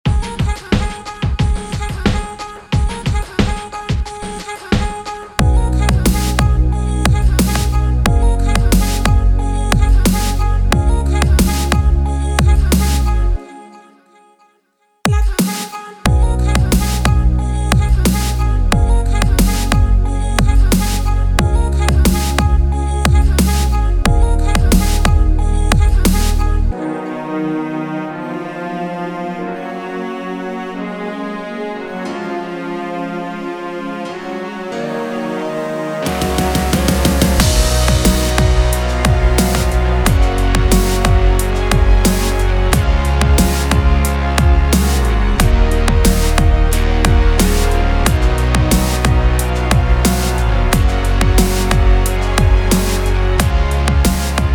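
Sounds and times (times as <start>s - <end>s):
Yamaha MIDI music: 0.1s - 14.0s, 15.1s - 54.5s.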